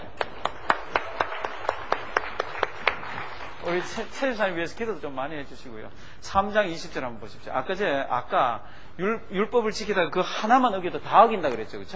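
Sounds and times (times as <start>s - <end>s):
church congregation clapping in unison: 0.0s - 4.2s
speech: 3.7s - 11.9s.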